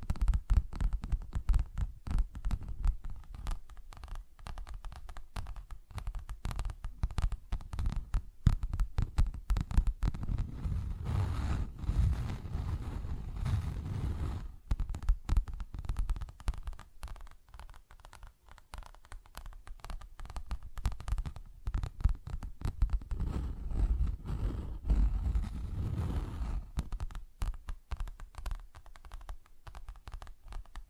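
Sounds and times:
rapid tapping and scratching: 0.0 - 30.8
soft low rumble: 10.1 - 14.7, 23.0 - 26.8.

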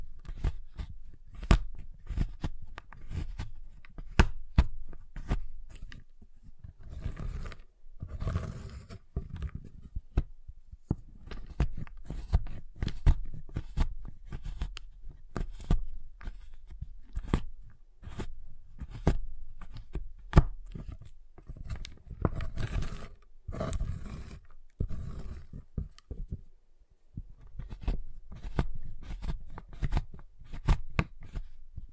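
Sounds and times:
cutting giant chocolate bar: 0.2 - 26.3, 27.2 - 31.6.

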